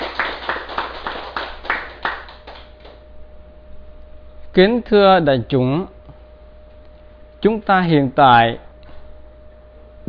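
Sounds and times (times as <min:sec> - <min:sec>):
audience clapping at a Buddhist dharma talk: 0:00.0 - 0:03.0
speech: 0:04.6 - 0:06.0, 0:07.4 - 0:08.6.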